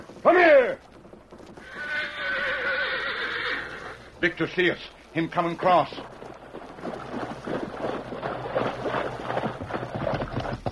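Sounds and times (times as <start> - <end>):
horse hooves clopping: 0.0 - 10.6
horse whinnying: 1.5 - 4.2
speech: 4.2 - 6.2.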